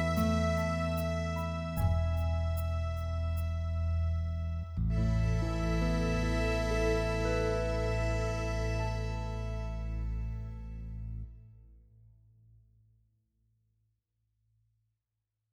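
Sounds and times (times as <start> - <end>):
accordion: 0.0 - 11.4.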